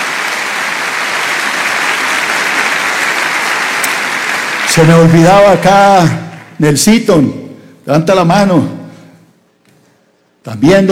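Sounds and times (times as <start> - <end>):
audience applause: 0.0 - 5.5
speech: 4.8 - 8.8, 10.4 - 10.9.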